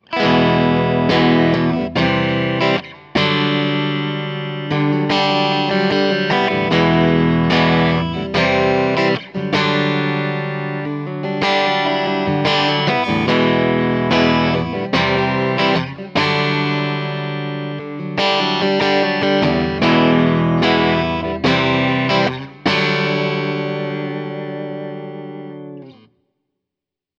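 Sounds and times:
clean electric guitar on middle pickup: 0.0s - 26.2s.

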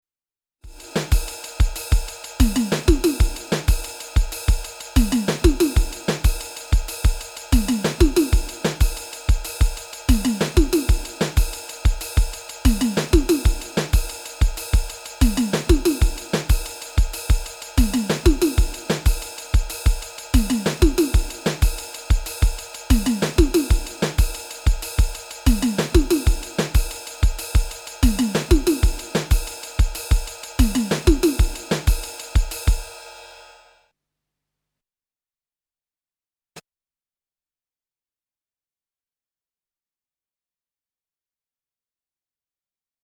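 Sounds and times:
Drumtraks drum machine groove: 0.7s - 33.1s.

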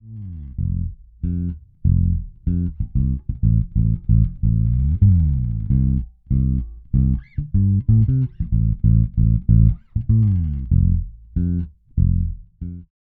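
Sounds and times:
Zoom B2 Four super low preamp bass tone: 0.0s - 12.9s.

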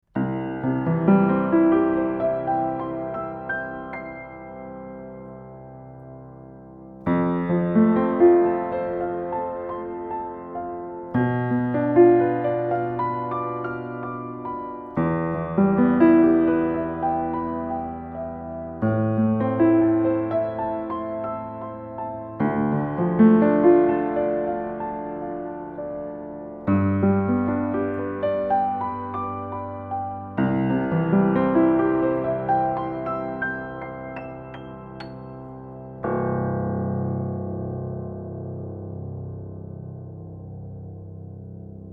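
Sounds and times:
piano recorded with DPA 4060 omni microphone under metal frame: 0.0s - 41.9s.

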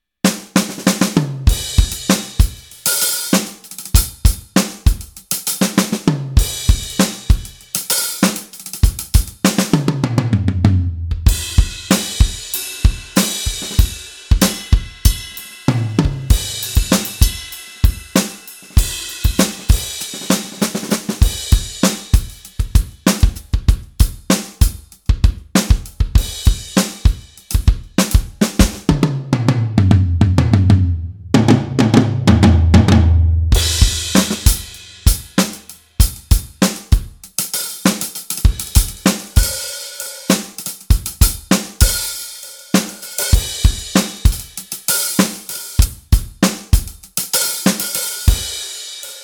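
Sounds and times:
Gewa G5 electronic drum module: 0.3s - 49.2s.

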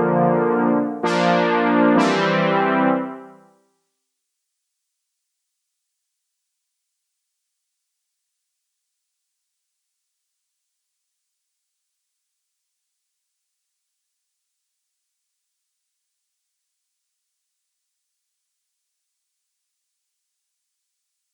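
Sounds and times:
Roland JX-3P house synth pad with reverb: 0.0s - 3.4s.

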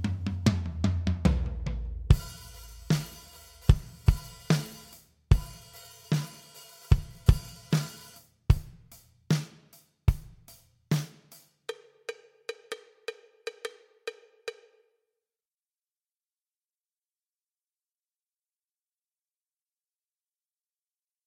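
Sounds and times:
dry black drum kit: 0.0s - 11.6s.

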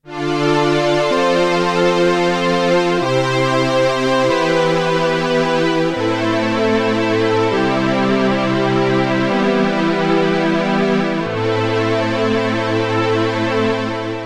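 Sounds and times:
Korg Polysix poly synth strings: 0.1s - 14.2s.

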